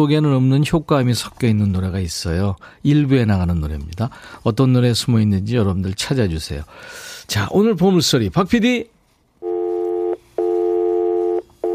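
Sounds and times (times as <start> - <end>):
speech: 0.0 - 9.0
telephone busy signal beeps: 9.4 - 11.7.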